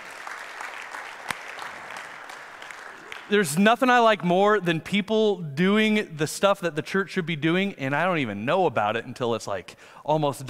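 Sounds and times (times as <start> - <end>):
audience applause: 0.0 - 3.4
speech: 3.3 - 10.4.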